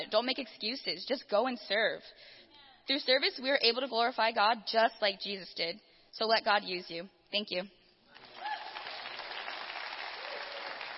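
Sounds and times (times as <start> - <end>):
speech: 0.0 - 7.8
audience applause: 8.2 - 10.9.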